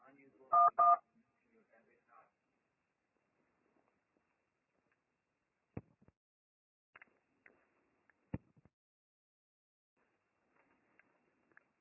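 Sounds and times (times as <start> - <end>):
telephone keypad dialing tones: 0.5 - 1.0.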